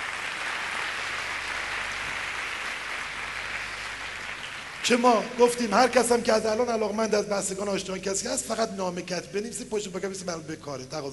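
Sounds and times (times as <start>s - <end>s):
audience applause at a self-confidence seminar: 0.0s - 5.3s
speech: 4.8s - 11.1s.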